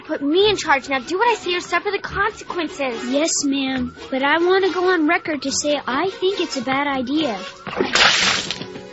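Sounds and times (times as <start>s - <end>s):
speech: 0.1s - 8.6s
bucket of water dumped on a television: 7.5s - 8.7s.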